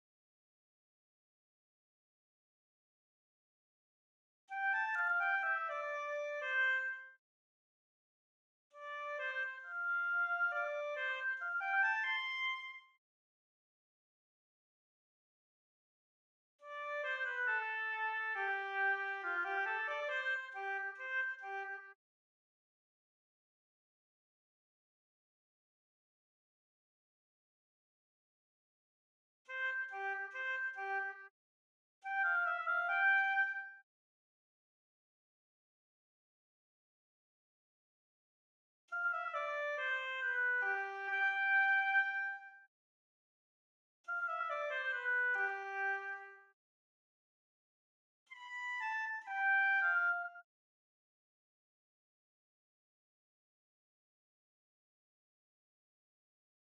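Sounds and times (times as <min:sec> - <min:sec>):
oboe: 0:04.5 - 0:07.1, 0:08.8 - 0:13.0, 0:16.7 - 0:21.9, 0:29.5 - 0:31.2, 0:32.1 - 0:33.8, 0:38.9 - 0:42.5, 0:44.1 - 0:46.4, 0:48.3 - 0:50.4.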